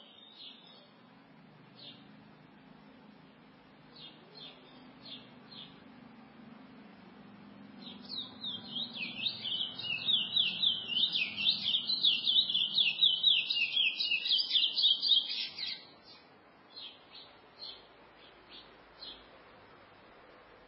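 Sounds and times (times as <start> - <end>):
chestnut-bellied seed finch warbling: 7.8 - 15.8.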